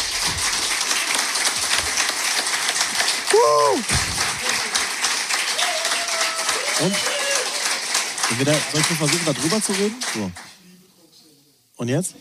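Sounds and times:
applause: 0:00.0 - 0:10.6
speech: 0:03.4 - 0:04.2, 0:06.8 - 0:07.1, 0:08.3 - 0:10.5, 0:11.8 - 0:12.1.

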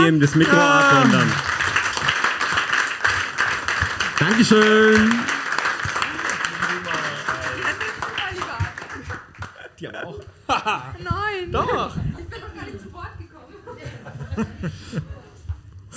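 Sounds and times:
live audience clapping: 0:00.0 - 0:09.8
speech: 0:00.1 - 0:01.5, 0:04.2 - 0:05.3, 0:10.1 - 0:12.4, 0:14.4 - 0:15.0
laughter: 0:06.0 - 0:15.4.

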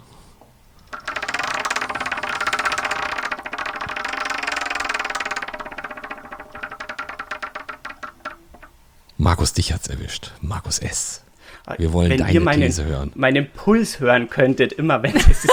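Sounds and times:
prize wheel spinning with rapid clicking: 0:00.8 - 0:08.8
speech: 0:09.3 - 0:15.5.

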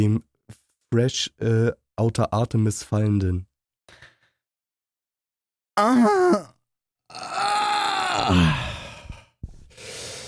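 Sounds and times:
speech: 0:00.0 - 0:00.3, 0:00.9 - 0:04.1, 0:05.8 - 0:07.5, 0:08.2 - 0:08.7
woman groaning: 0:07.1 - 0:08.9.

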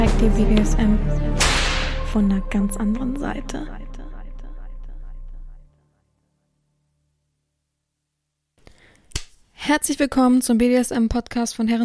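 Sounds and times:
speech: 0:00.2 - 0:03.9, 0:09.6 - 0:11.8
single sharp hand clap: 0:01.4 - 0:02.0, 0:09.1 - 0:09.4.

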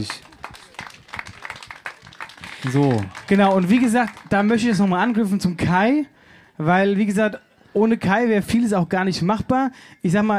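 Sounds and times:
speech: 0:00.0 - 0:00.3, 0:02.6 - 0:10.3
applause: 0:00.0 - 0:05.8.

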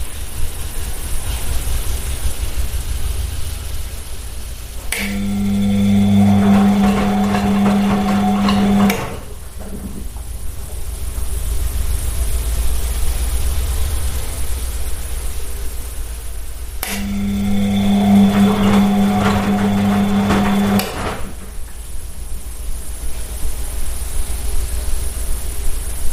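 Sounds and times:
washing machine running: 0:00.0 - 0:25.3
washing machine drum motor humming: 0:04.7 - 0:12.6, 0:16.8 - 0:22.0.

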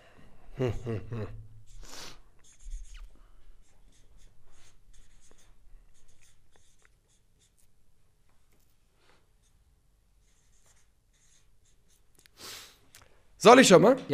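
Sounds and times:
speech: 0:00.6 - 0:01.4, 0:13.4 - 0:14.1
pen scratching on paper writing a vote: 0:01.6 - 0:07.9, 0:10.2 - 0:12.4.

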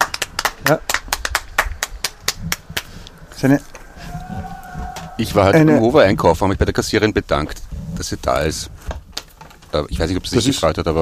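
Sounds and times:
people clapping outside: 0:00.0 - 0:03.5
speech: 0:00.7 - 0:01.0, 0:03.4 - 0:03.7, 0:05.2 - 0:08.8, 0:09.7 - 0:11.0.

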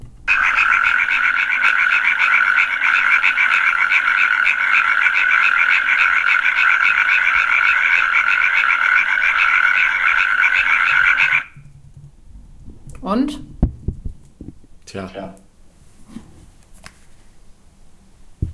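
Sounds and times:
natterjack toad calling: 0:00.3 - 0:11.6.

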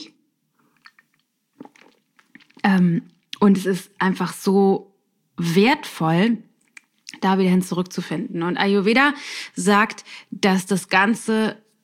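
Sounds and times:
person taking a quick sip of a drink: 0:00.6 - 0:03.4
speech: 0:02.7 - 0:06.5, 0:07.2 - 0:11.6.

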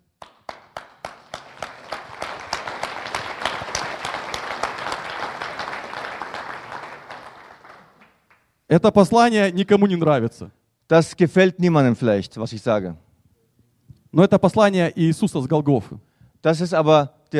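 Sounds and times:
audience applause: 0:00.2 - 0:08.5
speech: 0:08.7 - 0:13.0, 0:14.1 - 0:17.3.

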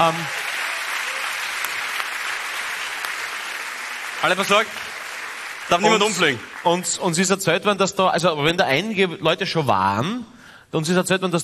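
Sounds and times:
speech: 0:00.0 - 0:00.4, 0:04.2 - 0:04.9, 0:05.7 - 0:11.4
audience applause: 0:00.0 - 0:07.3.

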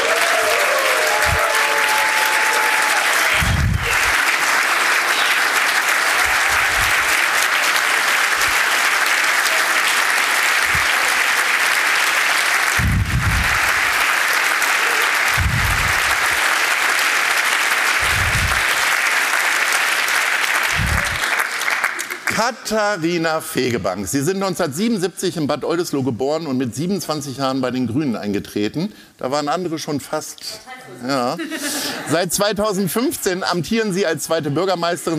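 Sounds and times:
audience applause: 0:00.0 - 0:22.5
speech: 0:22.7 - 0:35.1.

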